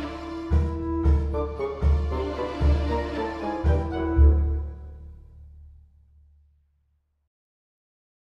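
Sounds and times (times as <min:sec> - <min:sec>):
orchestral theme: 0:00.0 - 0:05.8.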